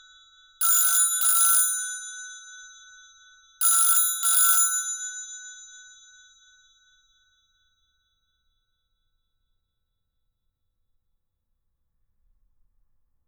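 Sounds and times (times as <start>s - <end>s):
UK analogue rotary dial telephone ringing at 25 Hz: 0.6s - 2.0s, 3.6s - 5.2s.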